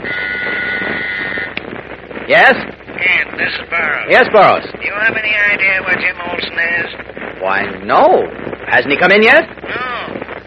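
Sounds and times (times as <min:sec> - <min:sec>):
interoffice phone buzzing: 0:00.0 - 0:01.6
speech: 0:02.3 - 0:09.9.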